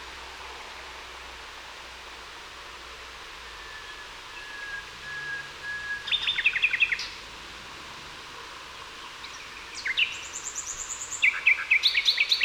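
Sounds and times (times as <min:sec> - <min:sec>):
common nightingale Luscinia megarhynchos singing: 0:03.4 - 0:07.2, 0:09.0 - 0:12.4.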